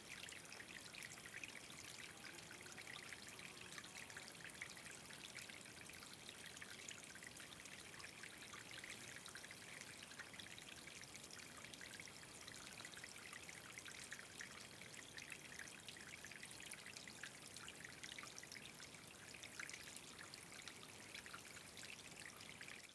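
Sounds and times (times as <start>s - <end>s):
small waterfall into a small pool in Chapada dos Veadeiros: 0.0s - 22.9s.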